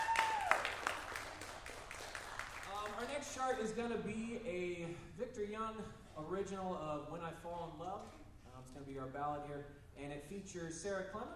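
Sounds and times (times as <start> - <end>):
faint audience applause after a jazz big band chart: 0.0 - 3.4
speech: 3.4 - 11.3.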